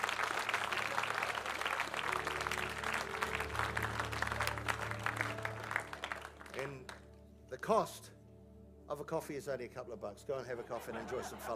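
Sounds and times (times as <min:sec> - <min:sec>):
audience clapping: 0:00.0 - 0:07.1
speech: 0:07.7 - 0:08.2, 0:08.9 - 0:11.5
laughter: 0:10.5 - 0:11.5.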